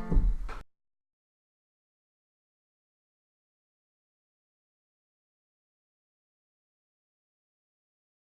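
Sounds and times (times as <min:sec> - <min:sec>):
gavotte music: 0:00.0 - 0:00.6.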